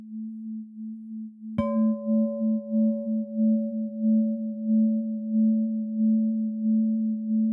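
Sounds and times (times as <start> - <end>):
Tibetan singing bowl ringing: 1.6 - 7.5.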